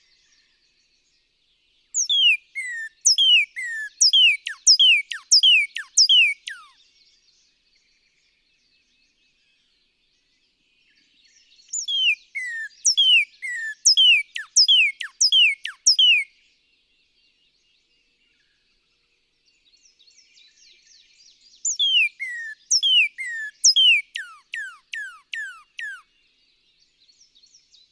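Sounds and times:
northern cardinal song: 0:02.0 - 0:06.7, 0:11.7 - 0:16.3, 0:21.7 - 0:26.1.

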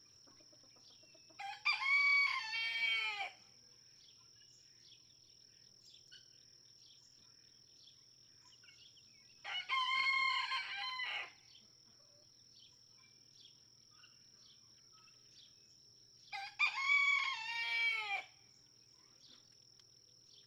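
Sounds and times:
red junglefowl rooster crowing in a barnyard in Kentucky: 0:01.4 - 0:03.4, 0:09.4 - 0:11.4, 0:16.3 - 0:18.4.

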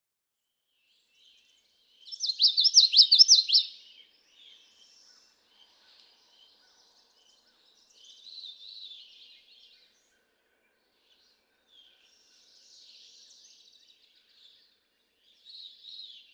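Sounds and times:
Common yellowthroat song: 0:02.2 - 0:03.8.

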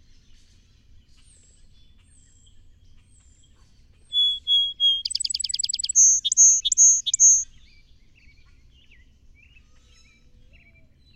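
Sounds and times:
song sparrow singing: 0:04.1 - 0:07.4.

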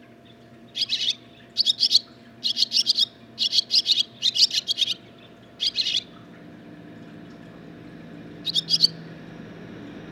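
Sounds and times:
barn swallow twittering song: 0:00.7 - 0:06.1, 0:08.4 - 0:09.1.

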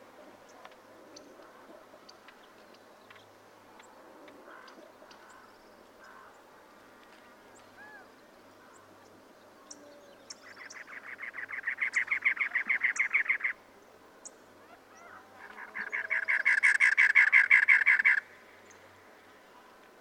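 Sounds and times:
cactus wren calling: 0:09.7 - 0:13.6, 0:14.6 - 0:18.8.

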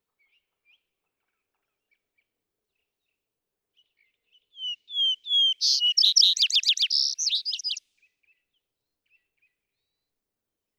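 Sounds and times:
vesper sparrow song: 0:04.0 - 0:07.8.

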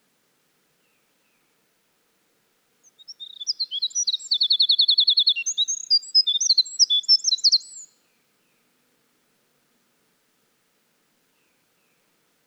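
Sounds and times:
winter wren singing: 0:02.8 - 0:07.9.

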